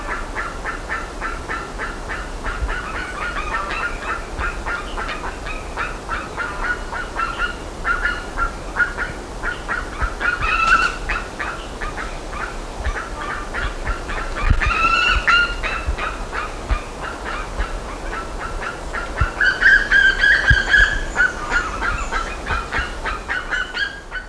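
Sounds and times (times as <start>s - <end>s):
harsh bird calls: 0.4s - 24.2s.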